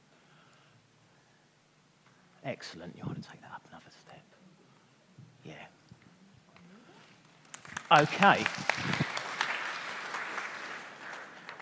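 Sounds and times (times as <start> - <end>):
speech: 2.4 - 4.3, 7.9 - 9.0
people clapping: 7.2 - 11.6.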